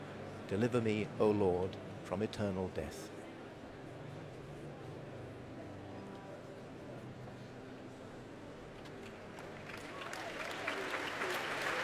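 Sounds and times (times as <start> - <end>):
speech: 0.5 - 3.2
large concert audience applause: 9.7 - 11.8.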